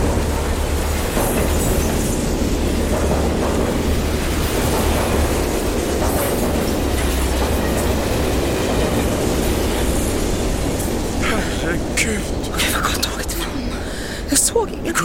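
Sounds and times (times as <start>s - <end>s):
train passing very close: 0.0s - 15.0s.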